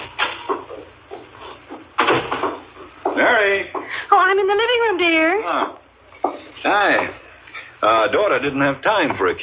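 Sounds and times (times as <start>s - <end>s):
footsteps up the walk to the front door: 0.4s - 4.1s
speech: 4.3s - 5.8s, 6.6s - 7.2s, 7.8s - 9.4s.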